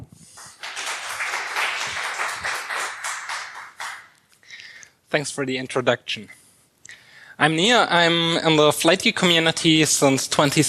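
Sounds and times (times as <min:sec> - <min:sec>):
audience applause: 0:00.4 - 0:04.1
speech: 0:05.1 - 0:06.4, 0:07.4 - 0:10.6.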